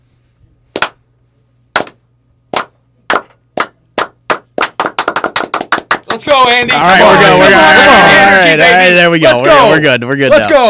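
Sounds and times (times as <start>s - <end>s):
slow handclaps: 0.8s - 1.0s, 1.8s - 6.8s
speech: 6.2s - 10.6s.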